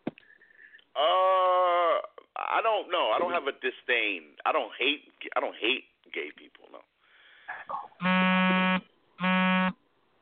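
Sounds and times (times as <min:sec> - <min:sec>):
speech: 0:01.0 - 0:01.2, 0:02.6 - 0:06.6
phone vibrating: 0:08.0 - 0:09.8.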